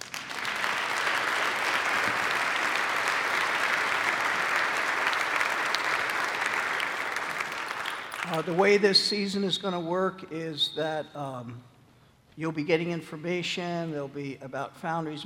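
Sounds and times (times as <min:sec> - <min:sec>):
audience applause: 0:00.0 - 0:08.7
speech: 0:08.3 - 0:11.7, 0:12.4 - 0:15.2.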